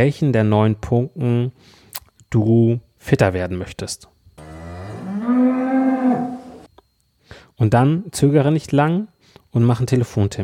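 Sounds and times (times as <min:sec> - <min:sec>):
speech: 0:00.0 - 0:04.1, 0:05.3 - 0:06.3, 0:07.6 - 0:10.4
dairy cow mooing: 0:04.4 - 0:06.7.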